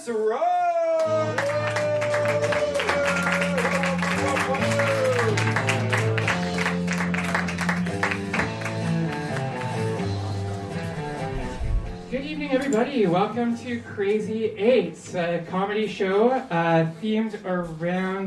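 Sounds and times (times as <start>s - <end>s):
speech: 0.0s - 1.8s, 12.5s - 18.2s
audience applause at a comedy show welcoming a comedian: 1.0s - 11.3s.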